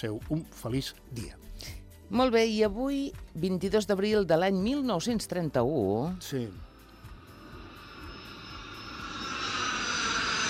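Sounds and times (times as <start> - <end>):
speech: 0.0 - 6.7
airplane passing overhead: 6.6 - 10.4.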